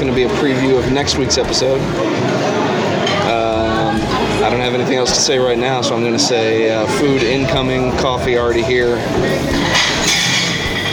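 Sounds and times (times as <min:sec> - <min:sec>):
speech: 0:00.1 - 0:02.4, 0:03.2 - 0:10.2
dishes breaking: 0:09.6 - 0:10.9.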